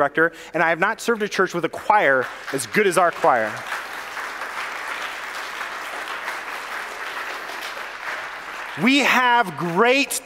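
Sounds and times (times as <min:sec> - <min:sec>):
speech: 0:00.0 - 0:03.8, 0:08.8 - 0:10.2
audience applause: 0:02.1 - 0:10.2.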